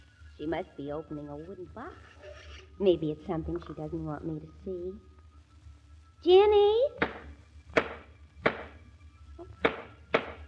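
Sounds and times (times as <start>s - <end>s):
speech: 0.4s - 5.1s, 6.2s - 7.3s
hammering to fix a squeaky floorboard: 7.0s - 8.8s, 9.6s - 10.4s.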